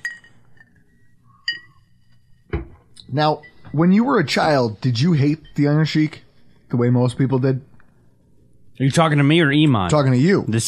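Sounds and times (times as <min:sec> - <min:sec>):
glasses clinking in a toast: 0:00.0 - 0:03.8
speech: 0:03.1 - 0:07.7, 0:08.8 - 0:10.6.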